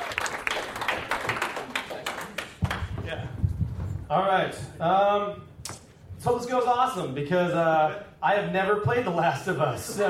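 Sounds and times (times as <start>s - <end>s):
hand clapping applause: 0.0s - 3.1s
speech: 4.1s - 5.5s, 6.2s - 10.0s.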